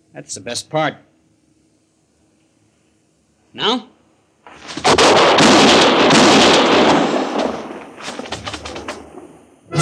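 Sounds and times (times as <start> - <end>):
speech: 0.1 - 1.1, 3.6 - 3.9
gunshots in an old-time radio drama: 4.5 - 9.7.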